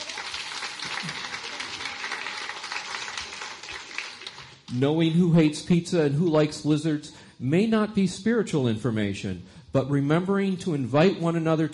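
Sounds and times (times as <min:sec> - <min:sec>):
congregation applause during a church service: 0:00.0 - 0:04.8
speech: 0:01.0 - 0:01.3, 0:04.7 - 0:11.7.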